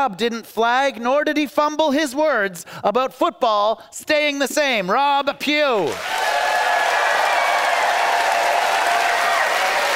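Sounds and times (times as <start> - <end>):
speech: 0.0 - 6.5
audience applause: 5.9 - 9.9.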